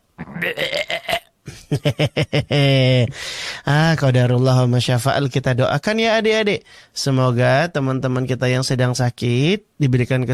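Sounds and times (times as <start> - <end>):
person imitating vomiting: 0.2 - 1.3
speech: 0.4 - 0.9, 1.7 - 10.3.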